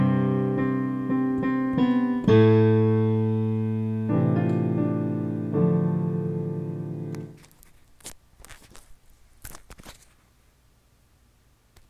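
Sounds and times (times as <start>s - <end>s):
piano: 0.0s - 7.5s.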